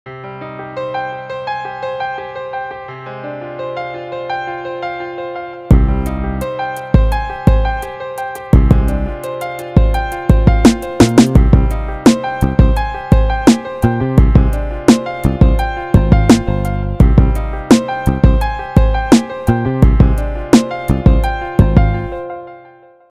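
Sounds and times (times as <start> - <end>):
nostalgic hip-hop beat: 5.7 - 22.2.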